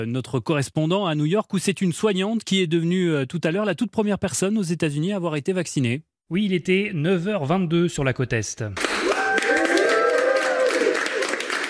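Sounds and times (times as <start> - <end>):
speech: 0.0 - 9.1
applause for a first vaccination in a Queens hospital in New York: 8.8 - 11.6.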